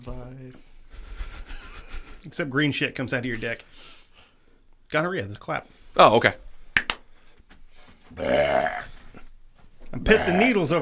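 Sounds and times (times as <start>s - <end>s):
speech: 0.0s - 0.7s, 2.2s - 4.0s, 4.9s - 6.4s, 8.1s - 8.9s, 9.9s - 10.7s
long loud burp: 8.2s - 9.0s, 10.1s - 10.6s.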